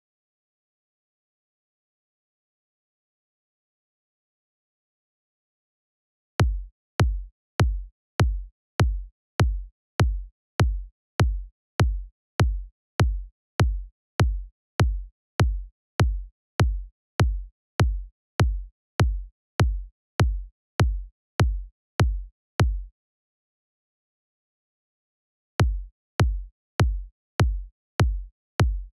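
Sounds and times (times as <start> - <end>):
kick drum: 6.4 - 22.9, 25.6 - 28.9.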